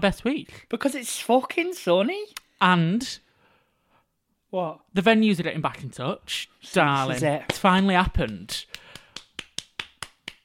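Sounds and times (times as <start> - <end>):
speech: 0.0 - 3.2, 4.5 - 8.8
hands clapping: 7.1 - 10.4.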